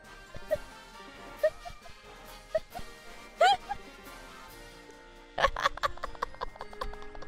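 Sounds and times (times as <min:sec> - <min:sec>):
person laughing: 0:00.4 - 0:00.7, 0:01.3 - 0:03.8, 0:05.4 - 0:07.2.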